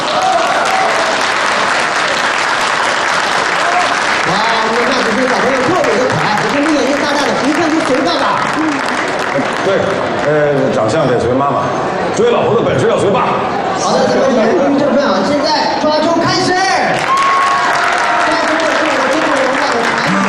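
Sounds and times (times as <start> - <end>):
audience applause at ceremony: 0.0 - 10.6, 16.9 - 20.2
speech: 9.4 - 17.1.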